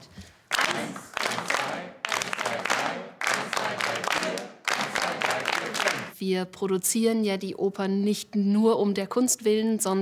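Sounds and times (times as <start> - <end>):
group clapping in time during a rhythm exercise: 0.4 - 6.2
speech: 6.2 - 10.0.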